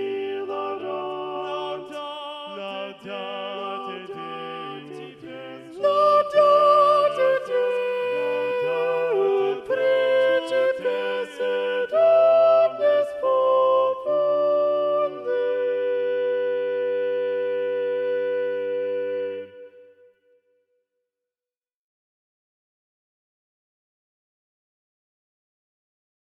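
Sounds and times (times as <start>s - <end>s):
predominant soprano singing: 0.0s - 20.0s.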